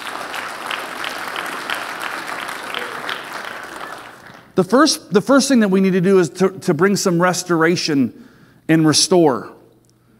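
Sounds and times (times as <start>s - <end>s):
audience applause: 0.0s - 4.6s
speech: 4.6s - 9.6s.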